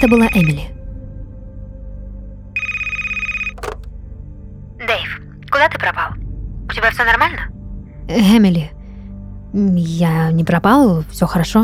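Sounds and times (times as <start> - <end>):
telephone ringing: 0.0 - 0.6, 2.6 - 3.9
speech: 0.0 - 0.8, 6.8 - 7.5, 8.1 - 8.8, 9.5 - 11.6.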